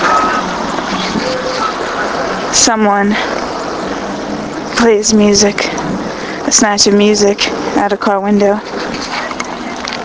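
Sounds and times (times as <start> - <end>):
low growl of a SEPTA city bus: 0.0 - 10.0
speech: 2.7 - 3.4, 4.8 - 5.7, 6.5 - 9.0.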